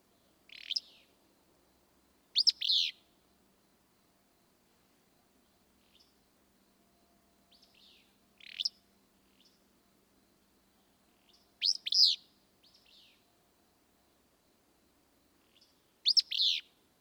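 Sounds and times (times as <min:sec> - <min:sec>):
Willow Flycatcher calling: 0:00.5 - 0:01.1, 0:02.4 - 0:03.0, 0:07.5 - 0:09.6, 0:11.2 - 0:13.2, 0:15.4 - 0:16.7.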